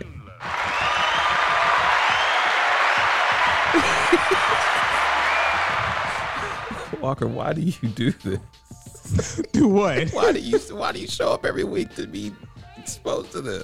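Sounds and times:
round of applause: 0.4 - 7.0
laughter: 0.5 - 7.0, 9.0 - 11.0
speech: 3.8 - 4.7, 7.0 - 13.6.

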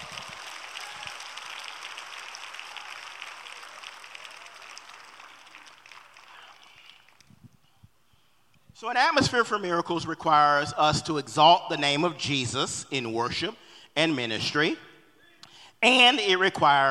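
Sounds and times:
audience clapping: 0.0 - 7.4
speech: 8.8 - 14.9, 15.8 - 16.8.

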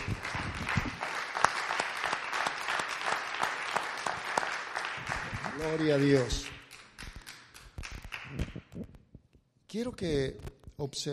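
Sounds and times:
audience applause: 0.0 - 8.7
speech: 5.6 - 6.5, 9.8 - 11.1.

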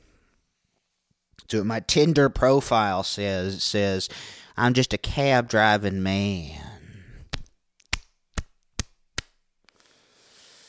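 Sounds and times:
speech: 1.5 - 6.7
slapping own face: 7.3 - 9.8.

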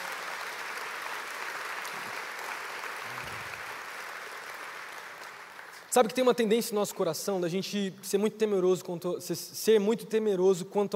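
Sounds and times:
audience applause: 0.0 - 5.9
speech: 6.0 - 10.9.

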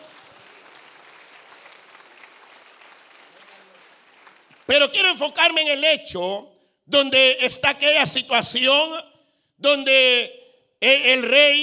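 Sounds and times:
audience clapping: 0.0 - 5.0
speech: 4.7 - 11.6.

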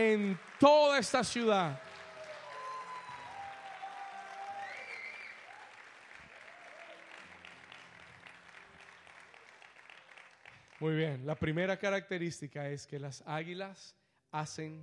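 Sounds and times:
speech: 0.0 - 1.9, 10.8 - 14.8
audience applauding: 0.0 - 11.2.

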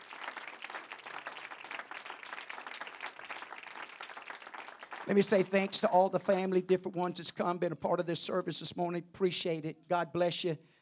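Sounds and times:
audience applause: 0.0 - 6.5
speech: 5.1 - 10.7.

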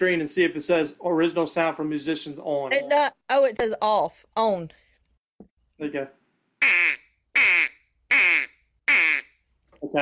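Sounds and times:
speech: 0.0 - 4.8, 5.8 - 7.0
duck call reed vibrating: 6.6 - 9.4.

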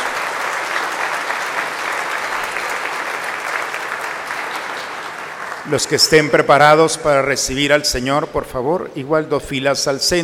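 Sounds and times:
audience applause: 0.0 - 6.4
speech: 5.7 - 10.2.

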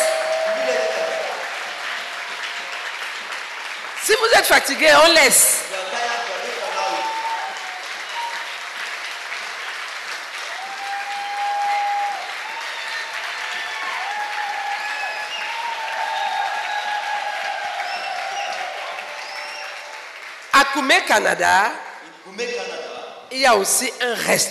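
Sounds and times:
church congregation cheering in praise of the Lord: 0.0 - 20.6
church congregation applauding in praise of the Lord: 0.0 - 21.4
speech: 4.1 - 5.5, 20.7 - 22.6, 23.3 - 24.4.

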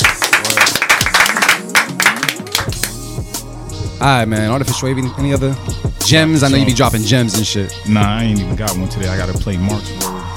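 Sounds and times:
audience clapping: 0.0 - 3.0
speech: 4.0 - 10.2.

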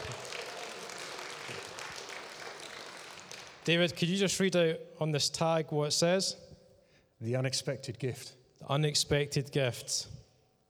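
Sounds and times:
audience applause: 0.0 - 3.7
speech: 3.7 - 6.5, 7.2 - 10.2.

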